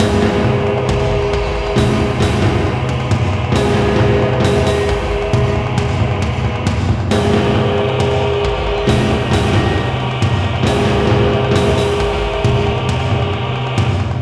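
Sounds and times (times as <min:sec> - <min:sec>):
danger music loop: 0:00.0 - 0:14.2.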